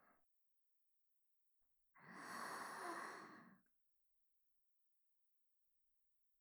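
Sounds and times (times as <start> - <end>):
sleep breathing: 2.1 - 3.5
ASMR sleep voice: 2.1 - 3.6.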